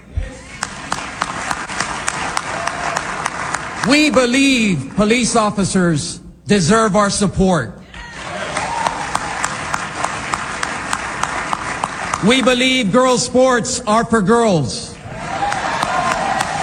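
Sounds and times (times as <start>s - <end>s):
thunderous applause from a crowd: 0.4s - 4.4s, 8.0s - 12.8s, 15.0s - 16.6s
speech: 3.8s - 7.8s, 12.2s - 15.0s.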